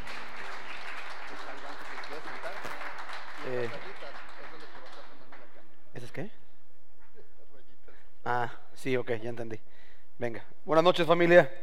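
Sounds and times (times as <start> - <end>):
audience applause: 0.0 - 5.6
speech: 8.3 - 11.6.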